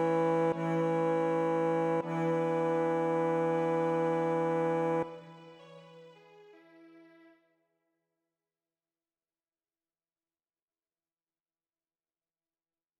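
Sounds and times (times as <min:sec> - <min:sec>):
bass: 0:00.0 - 0:05.1.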